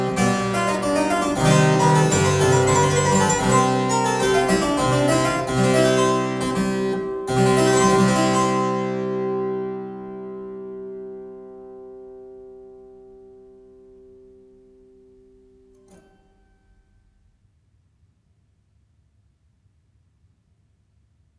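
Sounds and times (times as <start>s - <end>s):
galliard on harpsichord: 0.0s - 14.6s.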